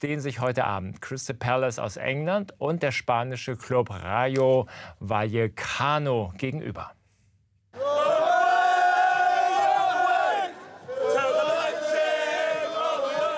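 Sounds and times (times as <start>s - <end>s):
speech: 0.0s - 7.0s
football fans singing: 7.8s - 13.3s.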